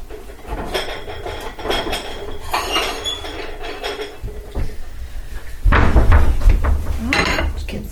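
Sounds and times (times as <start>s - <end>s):
small plate clinking and scraping as cubed roast chicken nachos are put on it: 0.0s - 4.6s, 7.1s - 7.6s
heavy thud: 5.6s - 7.6s.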